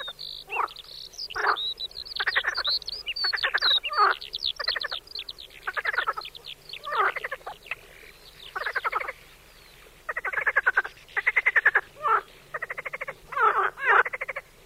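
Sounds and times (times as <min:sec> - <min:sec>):
marsh frog croaking in pulsed rattling bursts: 0:00.0 - 0:09.2, 0:10.1 - 0:14.5.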